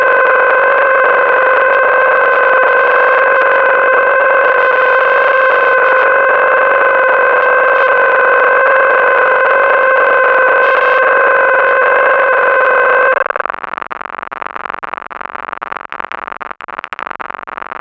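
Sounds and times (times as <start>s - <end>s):
old scanner: 0.0s - 13.6s.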